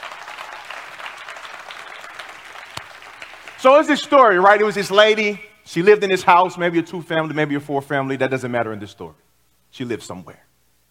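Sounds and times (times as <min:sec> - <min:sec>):
audience applause: 0:00.0 - 0:03.9
speech: 0:03.6 - 0:10.5.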